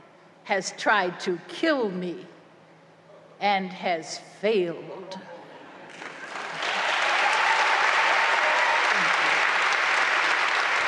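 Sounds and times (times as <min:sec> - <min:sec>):
speech: 0:00.5 - 0:02.4, 0:03.4 - 0:05.2
audience applause after a poem reading: 0:05.9 - 0:10.8.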